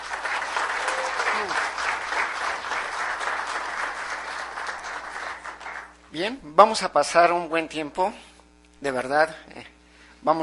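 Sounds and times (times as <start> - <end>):
audience applause welcoming a speaker to the stage at a lecture: 0.0 - 5.9
speech: 6.1 - 10.4.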